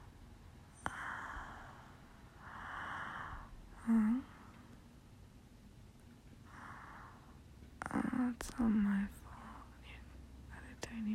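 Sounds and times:
heavy breathing: 0.8s - 4.6s, 6.5s - 7.4s
speech: 8.2s - 9.2s.

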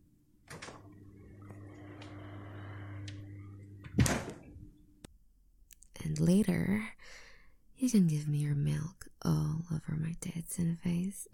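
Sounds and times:
steady low electrical hum: 0.0s - 11.3s
fridge door opening: 0.4s - 1.0s, 3.8s - 4.6s
fridge door shutting with a thunk: 3.8s - 4.6s
speech: 6.2s - 6.9s, 7.9s - 11.3s.

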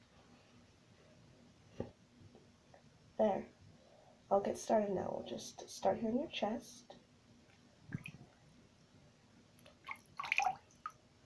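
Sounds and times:
speech: 3.2s - 3.6s, 4.3s - 6.9s
water dripping during sponge bath: 7.9s - 8.2s, 9.6s - 11.0s
wet squishing sounds: 9.6s - 11.0s.

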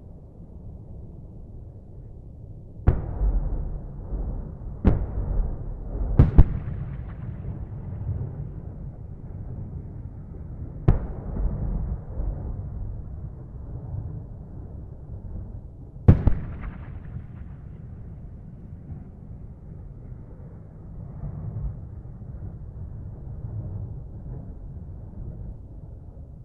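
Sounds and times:
distant combat explosions: 2.9s - 14.8s, 16.0s - 20.0s.

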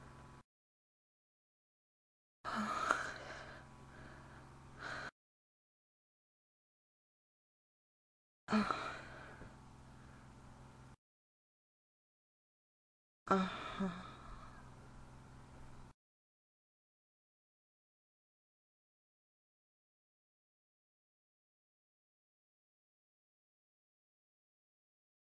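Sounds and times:
person moaning: 2.5s - 3.5s, 8.5s - 9.3s, 13.3s - 14.3s.

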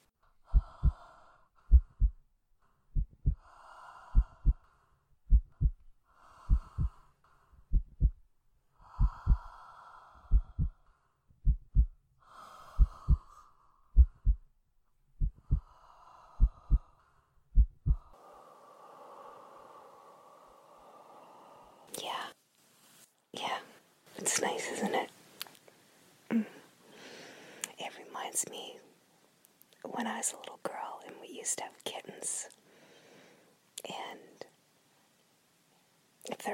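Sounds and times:
quiet breathing: 0.0s - 14.5s, 15.2s - 36.5s
breathy whispering: 0.4s - 2.1s, 3.0s - 8.1s, 8.8s - 10.8s, 11.8s - 14.4s, 15.2s - 17.2s, 17.8s - 22.4s, 23.4s - 25.2s, 27.6s - 28.9s, 29.8s - 32.6s, 33.8s - 34.5s
steady human heartbeat: 0.4s - 2.3s, 2.9s - 9.6s, 10.2s - 12.0s, 12.6s - 14.5s, 15.2s - 15.8s, 16.4s - 18.2s
speech: 24.4s - 25.2s, 30.2s - 32.6s.

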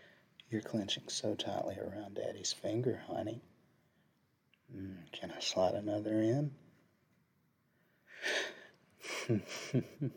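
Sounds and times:
speech: 0.5s - 3.5s, 4.7s - 6.6s, 9.3s - 10.1s
gasp: 8.0s - 8.8s.

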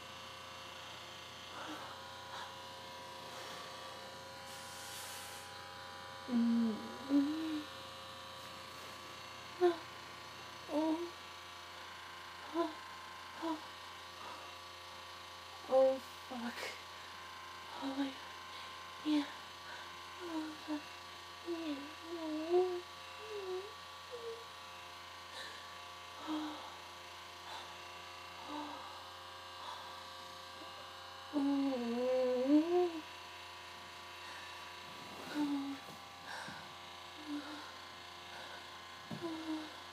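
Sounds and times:
person breathing: 1.5s - 7.7s, 16.6s - 20.8s, 25.3s - 30.8s, 34.1s - 39.8s
person moaning: 6.3s - 7.7s, 9.6s - 9.9s, 10.7s - 11.2s, 12.4s - 12.8s, 13.4s - 14.5s, 17.7s - 18.2s, 19.0s - 19.4s, 20.2s - 24.5s, 26.2s - 26.8s, 30.6s - 33.1s, 34.3s - 37.8s, 38.4s - 39.8s.

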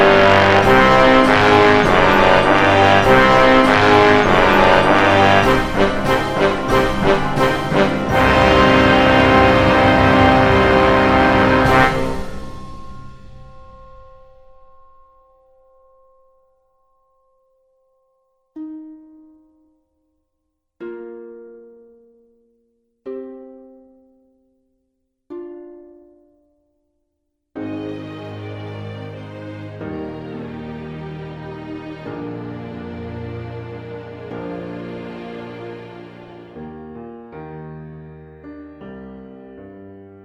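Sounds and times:
orchestra playing a symphony: 0.0s - 13.6s, 27.6s - 36.7s.

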